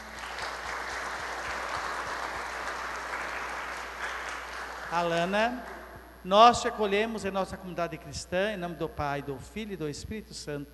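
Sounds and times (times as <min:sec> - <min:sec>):
audience applause: 0:00.0 - 0:05.9
speech: 0:04.9 - 0:10.7.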